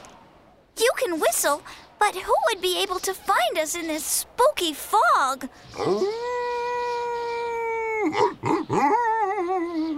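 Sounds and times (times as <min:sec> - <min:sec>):
speech: 0:00.8 - 0:06.3, 0:08.0 - 0:09.9
dog howling in the fog: 0:05.8 - 0:09.9.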